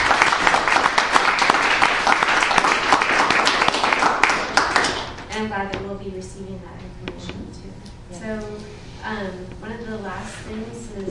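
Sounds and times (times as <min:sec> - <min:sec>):
audience applause: 0:00.0 - 0:05.2
speech: 0:08.1 - 0:11.0.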